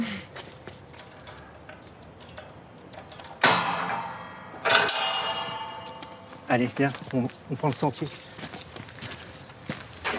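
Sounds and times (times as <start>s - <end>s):
keys unlocking and opening a door: 0.8s - 4.0s, 4.6s - 8.7s
speech: 6.5s - 8.3s.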